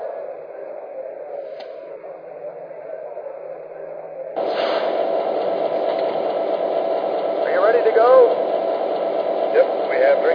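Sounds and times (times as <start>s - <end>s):
trains: 4.4s - 10.3s.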